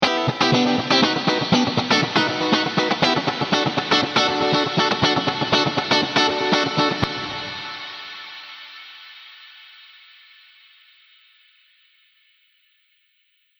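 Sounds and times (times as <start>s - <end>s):
funky guitar: 0.0s - 8.2s.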